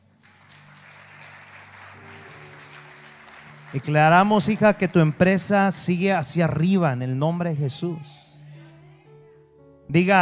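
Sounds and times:
audience applause: 0.0s - 6.1s
speech: 3.7s - 8.2s, 9.9s - 10.2s.

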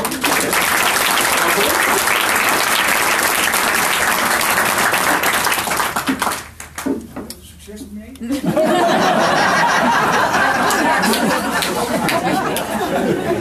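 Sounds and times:
audience applause: 0.0s - 6.8s, 9.6s - 13.3s
laughter: 8.2s - 13.3s.

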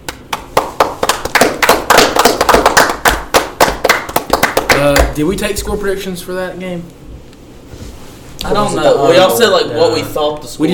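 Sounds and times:
hand clapping: 0.0s - 5.2s
speech: 4.8s - 7.0s, 8.4s - 10.7s.

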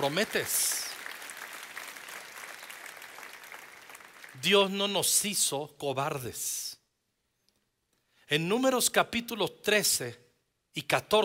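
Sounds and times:
speech: 0.0s - 0.7s, 4.4s - 6.8s, 8.3s - 10.2s, 10.8s - 11.2s
audience applause: 0.0s - 4.4s.

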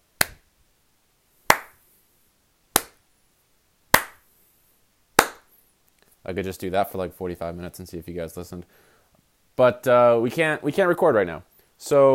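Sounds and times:
slow hand clapping: 0.2s - 0.4s, 1.5s - 1.8s, 2.8s - 3.0s, 3.9s - 4.3s, 5.2s - 5.5s
speech: 6.3s - 8.9s, 9.6s - 12.1s.

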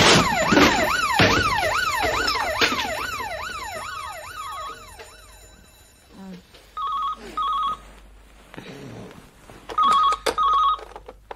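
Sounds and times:
telephone ringing: 0.2s - 8.0s, 9.8s - 11.0s.

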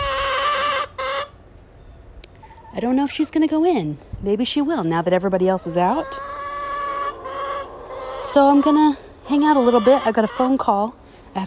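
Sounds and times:
hen squawking in the coop: 0.0s - 1.4s, 5.5s - 10.8s
speech: 2.8s - 6.4s, 8.4s - 11.4s.

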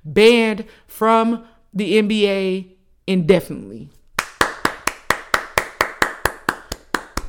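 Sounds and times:
speech: 0.0s - 4.0s
applause: 4.2s - 7.2s.

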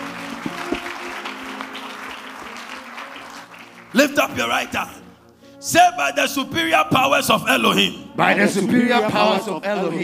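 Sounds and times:
audience clapping: 0.0s - 5.0s
speech: 3.9s - 5.0s, 5.6s - 10.0s.

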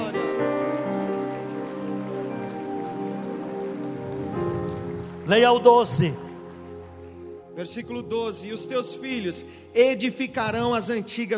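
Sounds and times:
audience applauding: 0.0s - 7.6s
speech: 5.3s - 6.2s, 7.6s - 11.3s.

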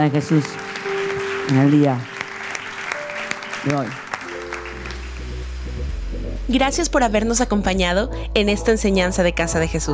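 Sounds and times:
speech: 0.0s - 0.8s, 1.5s - 2.1s, 3.6s - 4.0s, 6.5s - 9.9s
audience applause: 0.0s - 5.8s.

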